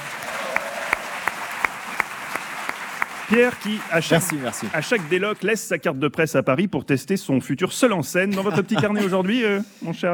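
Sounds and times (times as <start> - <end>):
audience applause: 0.0 - 5.6
speech: 3.3 - 10.1
laughter: 8.3 - 9.6.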